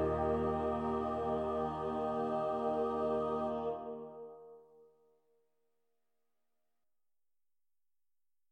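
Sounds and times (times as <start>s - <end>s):
wedding cantata: 0.0s - 4.8s.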